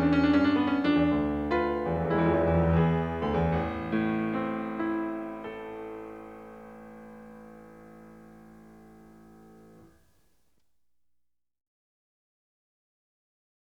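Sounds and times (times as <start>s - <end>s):
keyboard fugue in A minor: 0.0s - 9.9s.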